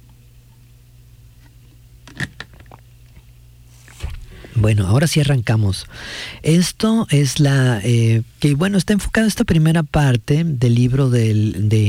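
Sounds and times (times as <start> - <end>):
person sipping water: 3.7 - 4.8
speech: 4.6 - 11.8.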